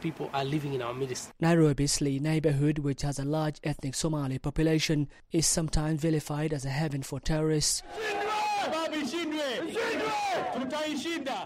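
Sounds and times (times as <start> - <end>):
speech: 0.0 - 11.4
crowd chanting in unison at a solidarity rally in Nairobi: 7.8 - 11.4.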